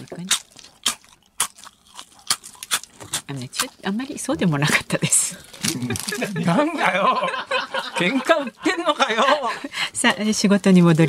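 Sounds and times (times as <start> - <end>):
person biting and chewing a rice cracker: 0.2 - 3.8, 5.5 - 6.3
speech: 3.3 - 11.0
laughter: 4.7 - 10.0.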